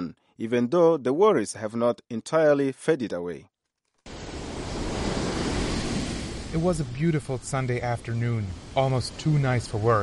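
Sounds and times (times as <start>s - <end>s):
speech: 0.1s - 3.5s, 6.5s - 10.0s
ocean surf roaring on a beach in Monrovia Liberia: 4.1s - 10.0s.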